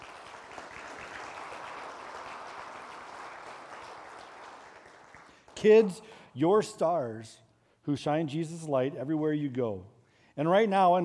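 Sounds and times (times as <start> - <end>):
audience applause for children: 0.0 - 5.6
speech: 5.6 - 11.0.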